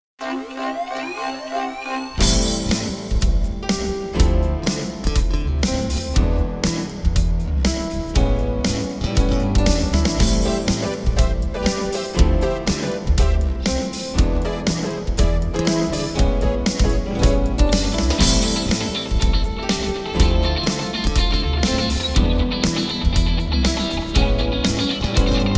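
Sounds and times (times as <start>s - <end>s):
funk music: 0.2s - 25.5s.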